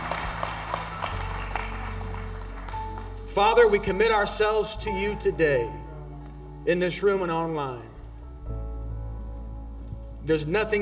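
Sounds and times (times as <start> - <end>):
audience clapping in praise: 0.0 - 4.0
speech: 3.4 - 5.8, 6.6 - 7.9, 10.3 - 10.7.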